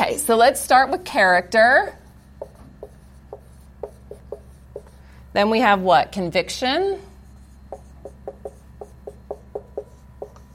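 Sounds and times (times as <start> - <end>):
speech: 0.1 - 2.0, 5.3 - 7.1
words being written on a board: 2.0 - 5.1, 7.1 - 10.5.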